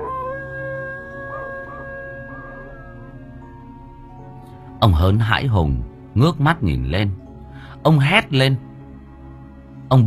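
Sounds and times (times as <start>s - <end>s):
neighbour's dog howling: 0.0s - 3.4s
speech: 4.8s - 7.2s, 7.8s - 8.7s.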